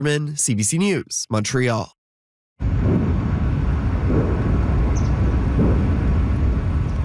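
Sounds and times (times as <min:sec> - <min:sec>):
speech: 0:00.0 - 0:02.0
distant explosions rumbling south of Moscow: 0:02.6 - 0:07.0.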